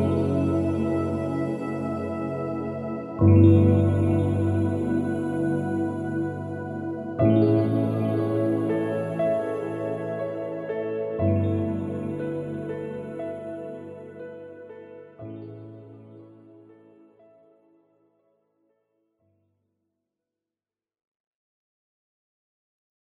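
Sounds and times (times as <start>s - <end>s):
chilled ambient music: 0.0s - 17.7s.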